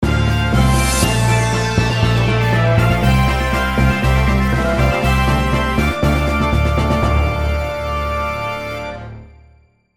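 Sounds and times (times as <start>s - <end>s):
stage start jingle: 0.1s - 9.7s.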